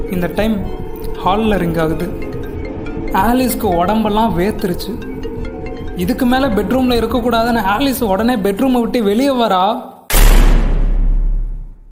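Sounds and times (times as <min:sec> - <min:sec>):
speech: 0:00.1 - 0:02.3, 0:03.1 - 0:05.1, 0:06.0 - 0:09.9
bedroom door slamming shut: 0:10.1 - 0:11.9.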